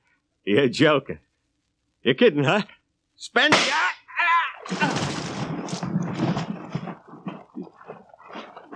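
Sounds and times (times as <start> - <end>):
speech: 0.4 - 1.2, 2.0 - 3.9
gunshot in a radio drama: 3.5 - 3.8, 4.7 - 5.8.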